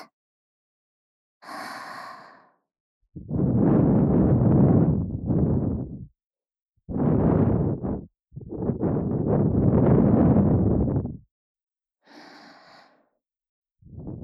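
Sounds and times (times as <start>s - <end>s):
blowing into left ear: 3.2s - 6.1s, 6.9s - 11.2s.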